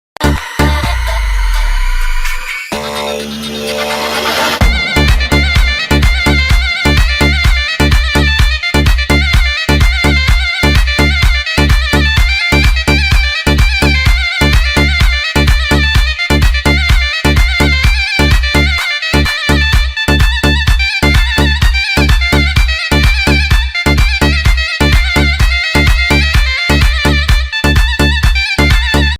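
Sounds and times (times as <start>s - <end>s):
davul and zurna playing halay: 0.4s - 29.1s.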